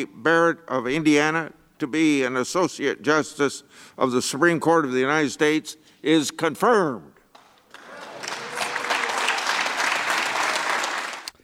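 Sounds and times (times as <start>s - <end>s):
speech: 0.0s - 7.1s
applause in the Senate chamber: 7.3s - 11.4s.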